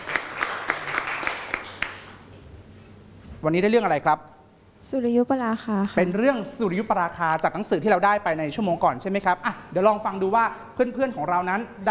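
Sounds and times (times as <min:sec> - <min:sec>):
classroom applause for a group: 0:00.0 - 0:02.3
speech: 0:03.4 - 0:11.8.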